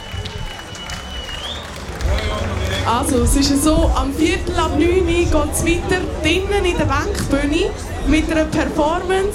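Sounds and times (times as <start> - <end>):
audience applause: 0.0 - 3.3
speech: 2.9 - 9.3.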